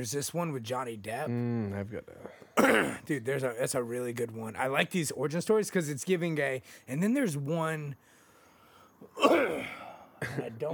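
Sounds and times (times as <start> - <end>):
speech: 0.0 - 8.1, 9.0 - 10.7
cough: 2.6 - 3.1, 9.2 - 10.6.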